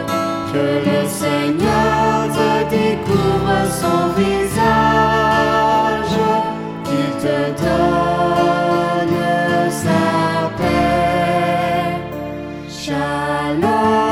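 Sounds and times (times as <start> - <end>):
benediction chant: 0.0 - 14.0.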